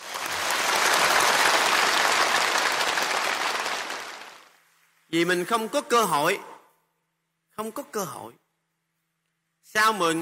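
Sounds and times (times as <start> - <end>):
audience applause: 0.0 - 4.6
speech: 5.1 - 6.5, 7.6 - 8.4, 9.6 - 10.2.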